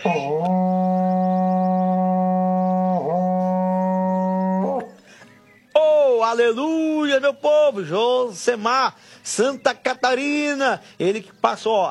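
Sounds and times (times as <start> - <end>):
berrante cattle horn being blown: 0.0 - 5.0
speech: 6.3 - 11.9.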